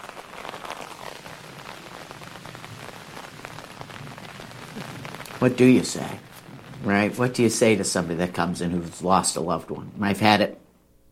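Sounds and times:
droplets pattering on surfaces: 0.0 - 8.1
steady rain outdoors: 0.0 - 10.5
speech: 5.4 - 10.6.

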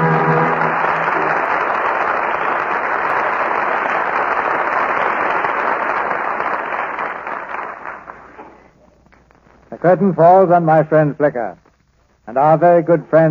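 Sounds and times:
audience applause: 0.0 - 8.8
speech: 9.9 - 11.6, 12.3 - 13.3.

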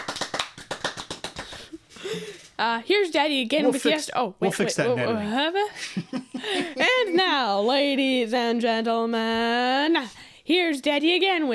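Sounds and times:
fast clapping: 0.0 - 1.8
speech: 2.6 - 11.5.

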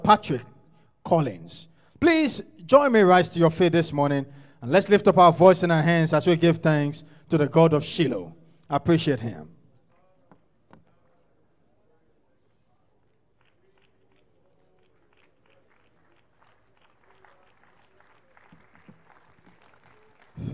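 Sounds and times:
speech: 0.1 - 9.5
audience clapping: 13.0 - 20.5.

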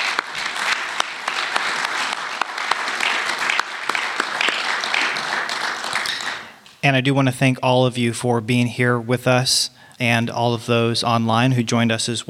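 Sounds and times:
audience applauding: 0.0 - 6.6
speech: 6.8 - 12.2.

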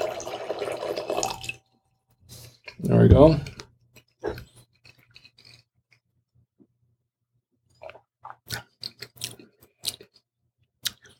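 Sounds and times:
water poured into a glass: 0.0 - 1.6
speech: 2.8 - 3.6.

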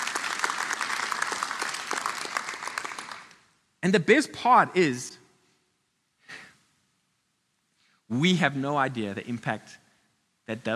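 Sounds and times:
audience applause: 0.0 - 3.4
speech: 3.8 - 5.2, 8.2 - 9.8, 10.5 - 10.7.

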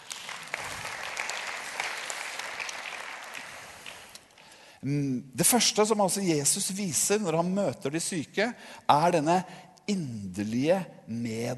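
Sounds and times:
audience applause: 0.0 - 4.3
speech: 4.8 - 11.5.

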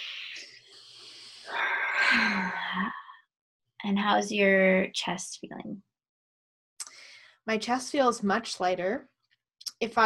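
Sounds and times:
slow comfortable breath during a calming guided exercise: 0.0 - 3.2, 6.8 - 7.4
speech: 3.8 - 5.9, 7.4 - 9.1, 9.8 - 10.0.

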